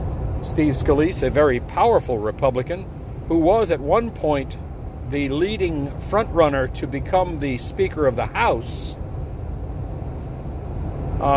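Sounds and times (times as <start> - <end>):
road noise inside a car driving through heavy afternoon traffic: 0.0 - 11.3
speech: 0.4 - 9.0, 11.2 - 11.3.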